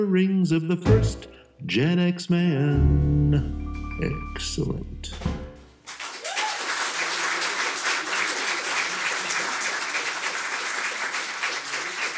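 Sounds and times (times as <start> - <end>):
speech: 0.0 - 5.4
canned applause from a fake studio audience: 5.8 - 12.1.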